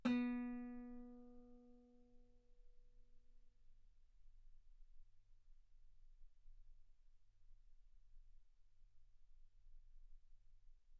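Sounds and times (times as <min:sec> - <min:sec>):
guitar note B3: 0:00.0 - 0:01.4.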